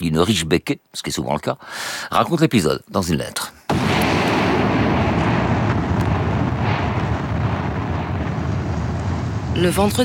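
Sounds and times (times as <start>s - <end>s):
speech: 0.0s - 3.6s, 9.6s - 10.0s
violent volcanic detonation from the mountain: 3.7s - 10.0s.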